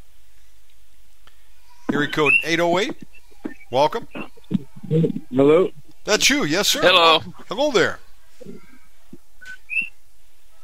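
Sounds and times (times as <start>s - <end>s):
speech: 1.9s - 3.1s, 3.7s - 8.6s
pet bird whistling: 1.9s - 4.4s, 9.4s - 10.0s.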